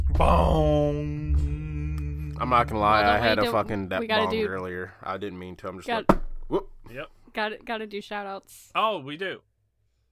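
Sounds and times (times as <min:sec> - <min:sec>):
speech: 0:00.2 - 0:01.2, 0:02.4 - 0:09.5
hand slapping a desk: 0:06.1 - 0:06.5.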